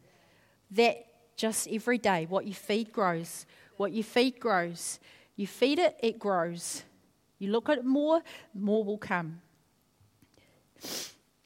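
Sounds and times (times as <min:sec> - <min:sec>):
speech: 0:00.7 - 0:09.4, 0:10.8 - 0:11.1
person sniffing: 0:10.8 - 0:11.3.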